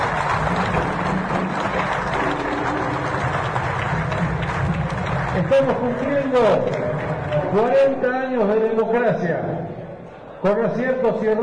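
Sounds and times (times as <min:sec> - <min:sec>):
audience applause: 0:00.0 - 0:07.7
speech: 0:05.4 - 0:06.8, 0:07.5 - 0:09.8, 0:10.4 - 0:11.4.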